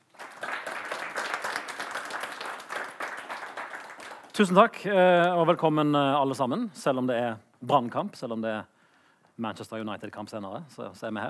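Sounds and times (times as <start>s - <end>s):
audience applause: 0.0s - 4.5s
speech: 4.4s - 8.7s, 9.4s - 11.2s.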